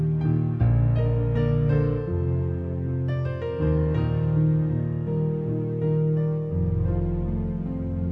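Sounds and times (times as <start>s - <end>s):
piano piece: 0.0s - 8.1s.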